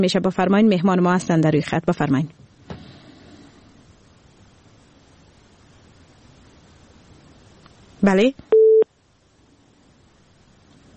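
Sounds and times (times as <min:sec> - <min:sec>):
speech: 0:00.0 - 0:02.4, 0:08.0 - 0:08.5
telephone beep after a dropped call: 0:08.5 - 0:08.9.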